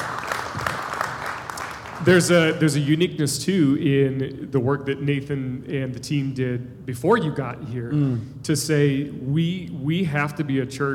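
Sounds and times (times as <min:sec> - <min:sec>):
audience applause in church: 0:00.0 - 0:02.1
speech: 0:02.0 - 0:10.9.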